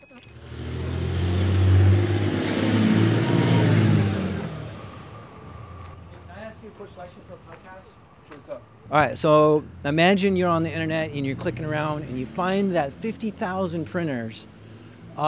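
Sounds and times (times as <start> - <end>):
car driving past accelerating: 0.3 - 15.2
speech: 8.9 - 14.6.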